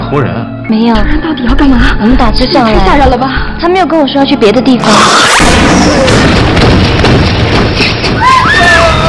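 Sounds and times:
speech: 0.1s - 6.7s
gunshot: 5.1s - 8.2s.

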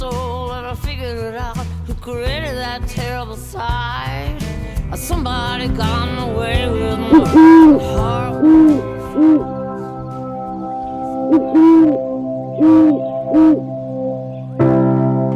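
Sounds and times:
speech: 2.1s - 9.5s
sustained humming bell-like tone: 5.0s - 15.2s
louder resonant bell strikes: 5.3s - 13.4s
short swooping owl hoots: 7.1s - 9.9s, 11.1s - 13.8s.

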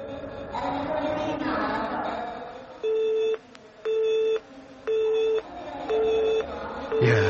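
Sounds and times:
murky noise: 0.0s - 7.2s
coin-operated payphone busy signal tones: 2.8s - 7.2s.

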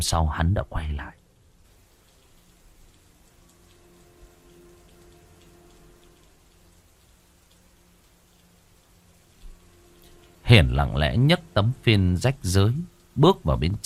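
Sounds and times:
speech: 0.0s - 1.2s, 10.5s - 13.8s
faint low hum: 0.0s - 13.8s
steady rain pouring at night over muddy ground: 0.0s - 13.8s
drips and patters striking hard surfaces: 1.6s - 13.8s.

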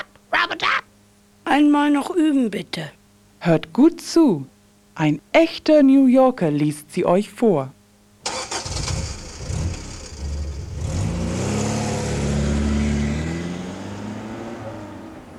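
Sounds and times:
speech: 1.5s - 7.8s
car engine starting: 8.2s - 15.3s.

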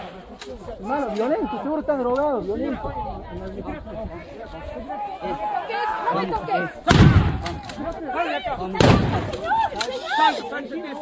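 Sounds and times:
crowd chatter: 0.0s - 11.0s
speech: 0.4s - 11.0s
police gun blasts fired at protesters during a street demonstration: 6.9s - 7.8s, 8.8s - 9.6s.

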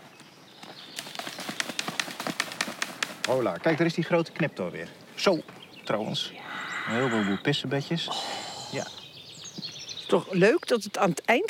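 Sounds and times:
knocking on low shrubs: 1.3s - 3.6s
speech: 3.3s - 9.0s, 10.1s - 11.4s.

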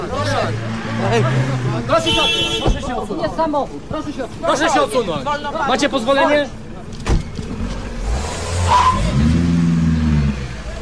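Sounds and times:
car driving away from prison: 0.0s - 2.0s, 7.0s - 10.7s
speech: 0.5s - 6.6s, 8.7s - 9.2s.

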